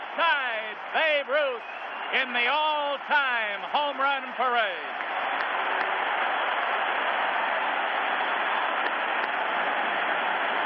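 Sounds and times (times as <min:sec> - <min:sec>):
stadium crowd standing ovation: 0:00.0 - 0:10.6
speech: 0:00.2 - 0:06.1.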